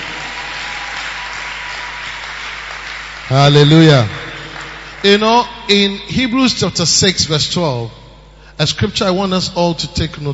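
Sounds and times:
audience clapping: 0.0 - 5.5
speech: 3.3 - 4.2, 5.0 - 8.0, 8.6 - 10.3.

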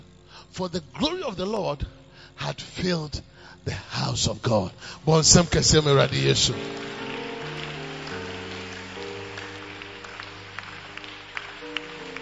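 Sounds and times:
speech: 0.6 - 6.9
sustained keyboard chords: 5.2 - 12.1
audience clapping: 5.4 - 12.1.

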